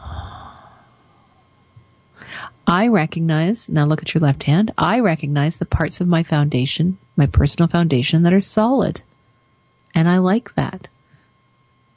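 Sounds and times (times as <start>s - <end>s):
deep breath during a guided exercise: 0.0s - 1.4s, 2.2s - 2.6s
speech: 2.7s - 9.1s, 10.0s - 10.9s.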